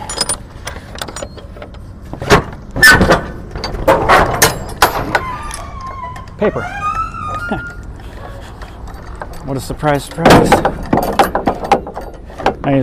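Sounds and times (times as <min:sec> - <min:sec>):
heavy metal truck trailer doors clanking and creaking open: 0:02.2 - 0:07.9, 0:08.9 - 0:12.8
speech: 0:06.4 - 0:06.8, 0:07.5 - 0:07.7, 0:09.5 - 0:10.8, 0:12.7 - 0:12.8
laughter: 0:07.4 - 0:07.8.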